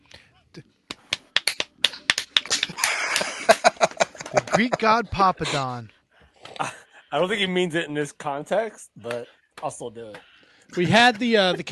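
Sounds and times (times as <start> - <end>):
hand slapping a leg: 0.9 - 4.5
laughter: 2.5 - 5.8, 10.8 - 11.7
speech: 4.6 - 5.9, 6.6 - 11.7.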